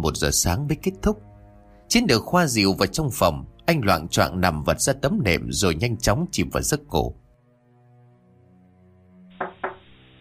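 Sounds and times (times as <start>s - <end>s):
speech: 0.0s - 1.3s, 1.9s - 7.2s
steady low tone: 0.0s - 10.1s
knocks on an earthen floor: 9.4s - 9.9s.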